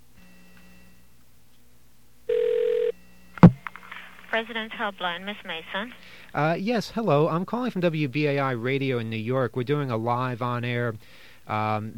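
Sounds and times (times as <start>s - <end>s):
customer service telephone ringing tone: 2.3s - 3.0s
speech: 4.3s - 11.9s.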